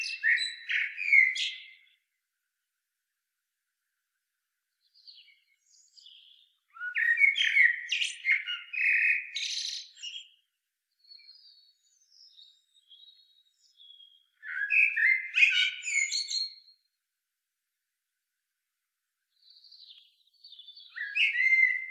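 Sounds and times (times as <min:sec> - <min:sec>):
common blackbird Turdus merula song: 0:00.0 - 0:02.2, 0:04.7 - 0:17.0, 0:19.2 - 0:21.8.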